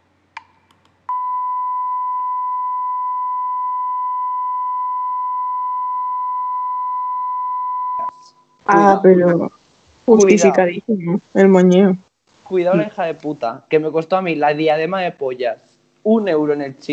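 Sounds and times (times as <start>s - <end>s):
censor beep: 1.1s - 8.4s
speech: 8.7s - 16.9s.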